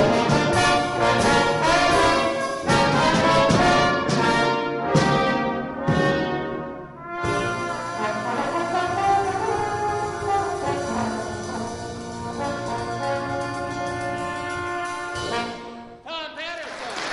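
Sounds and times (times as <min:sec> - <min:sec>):
jazz band playing blues: 0:00.0 - 0:16.0.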